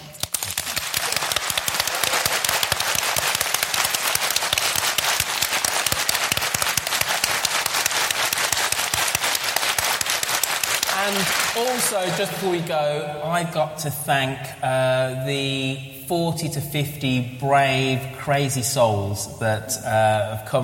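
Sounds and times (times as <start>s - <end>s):
crowd applauding: 0.0s - 12.8s
speech: 11.9s - 20.6s.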